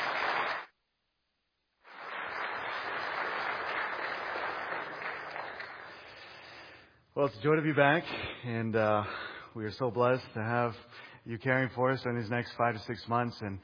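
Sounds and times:
audience applause: 0:00.0 - 0:00.7, 0:01.9 - 0:06.4
speech: 0:07.2 - 0:13.6.

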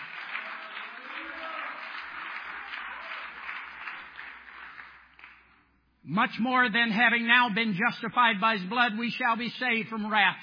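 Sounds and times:
audience clapping: 0:00.0 - 0:05.7
speech: 0:06.1 - 0:10.4.

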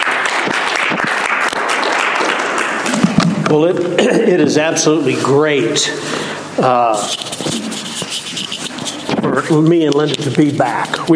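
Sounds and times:
audience applause welcoming a returning speaker: 0:00.0 - 0:03.7
speech: 0:03.5 - 0:07.7, 0:09.2 - 0:11.1.

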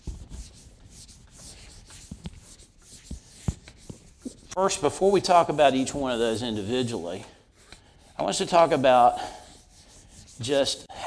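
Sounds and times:
eraser scrubbing writing off a board: 0:00.0 - 0:04.5, 0:07.6 - 0:10.9
speech: 0:04.6 - 0:07.4, 0:08.2 - 0:09.4, 0:10.4 - 0:11.0.

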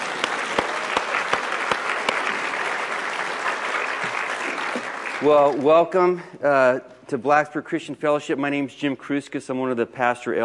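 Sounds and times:
audience clapping: 0:00.0 - 0:06.2
speech: 0:05.2 - 0:10.4.

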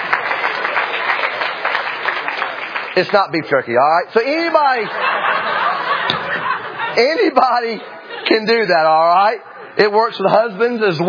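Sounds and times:
audience applause at a live stage show: 0:00.0 - 0:03.5
speech: 0:03.0 - 0:05.6, 0:07.0 - 0:11.0
laughter: 0:04.4 - 0:09.8.

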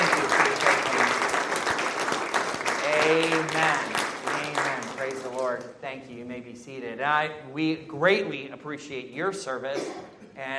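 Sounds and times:
church congregation applauding military veterans: 0:00.0 - 0:05.7
speech: 0:05.5 - 0:10.5.

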